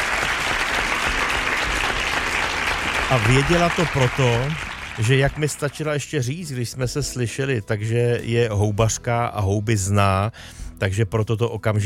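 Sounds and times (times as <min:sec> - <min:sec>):
applause: 0:00.0 - 0:05.9
speech: 0:03.1 - 0:11.8.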